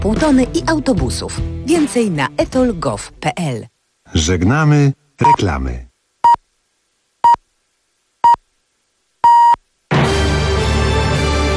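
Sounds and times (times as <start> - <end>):
music: 0.0 - 3.2, 9.9 - 11.5
speech: 0.0 - 5.9
radio hourly time signal pips marking 8 o'clock: 9.2 - 9.6.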